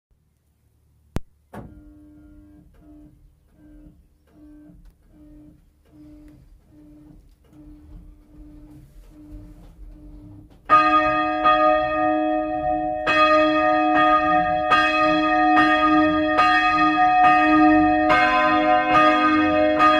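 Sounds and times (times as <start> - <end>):
new bells ringing: 10.7 - 19.9.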